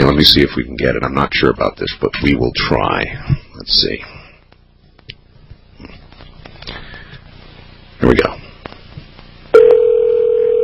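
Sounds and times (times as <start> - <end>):
speech: 0.2 - 4.1, 8.0 - 8.4
steady mid-pitched telephone tone: 9.6 - 10.6.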